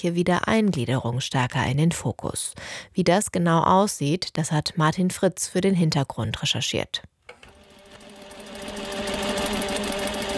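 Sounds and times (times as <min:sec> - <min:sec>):
speech: 0:00.0 - 0:07.1
industrial sewing machines rattling in a workroom: 0:07.5 - 0:10.3.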